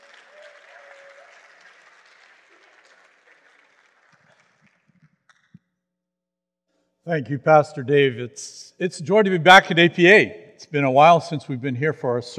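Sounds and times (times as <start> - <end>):
audience applause welcoming a guest speaker at a Sunday church service: 0.0 - 5.2
speech: 7.1 - 12.3.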